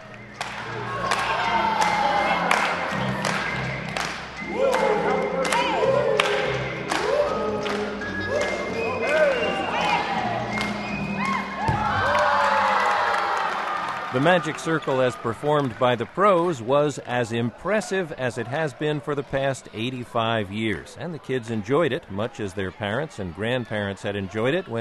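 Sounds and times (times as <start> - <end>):
large indoor crowd cheering and shouting: 0.6 - 3.3, 4.4 - 24.8
ball bouncing on hard court: 11.7 - 12.0
speech: 14.2 - 24.8.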